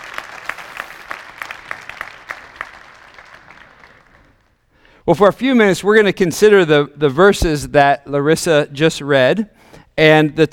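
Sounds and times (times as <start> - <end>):
audience applauding the orchestra and band: 0.0 - 4.6
speech: 5.1 - 10.5.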